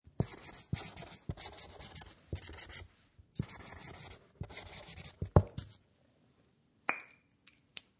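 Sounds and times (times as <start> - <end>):
permanent marker pen writing on paper: 0.2 - 5.8.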